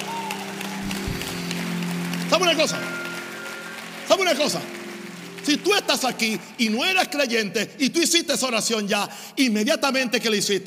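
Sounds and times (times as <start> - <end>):
audience applauding: 0.0 - 7.4
speech: 2.3 - 3.0, 4.1 - 4.8, 5.4 - 10.6.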